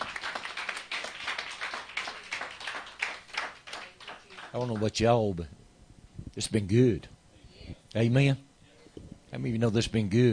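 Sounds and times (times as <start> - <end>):
audience clapping: 0.0 - 5.0
speech: 4.5 - 5.6, 6.4 - 7.1, 7.9 - 8.5, 9.3 - 10.3.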